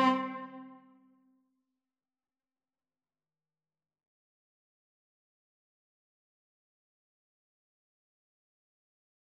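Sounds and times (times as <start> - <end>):
Slovak folk dance music: 0.0 - 0.7.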